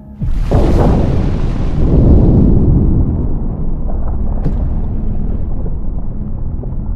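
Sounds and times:
rumbling underwater tremor shaking the ocean floor: 0:00.2 - 0:06.9.

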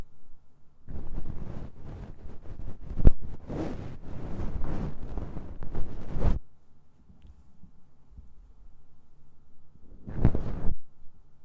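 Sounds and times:
low steady hum: 0:00.0 - 0:11.4
scratchy ear cleaning rustling: 0:00.9 - 0:06.4, 0:09.9 - 0:10.8.

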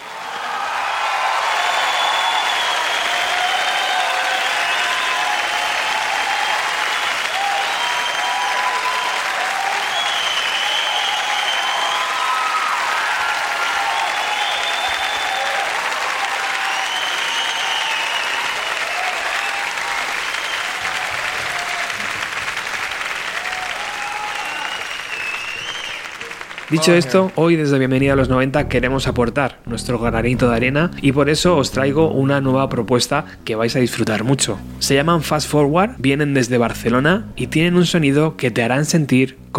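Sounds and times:
applause: 0:00.0 - 0:27.8
speech: 0:26.7 - 0:39.5.

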